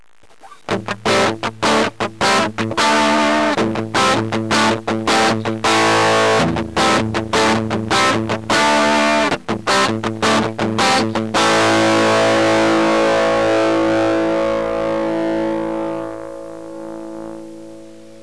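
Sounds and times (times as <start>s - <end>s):
electric guitar through MXR Germanium and Distortion+ pedals: 0.0s - 18.2s.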